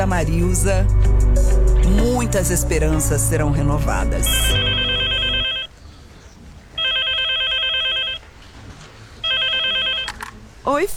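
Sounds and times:
speech: 0:00.1 - 0:04.9, 0:10.7 - 0:10.9
telephone ringing for an incoming call: 0:04.3 - 0:05.7, 0:06.8 - 0:08.3, 0:09.2 - 0:10.3.

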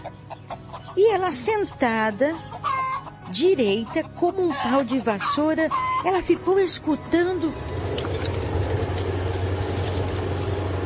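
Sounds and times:
speech: 0:01.0 - 0:02.6, 0:03.3 - 0:07.9
car engine approaching: 0:06.9 - 0:10.8.

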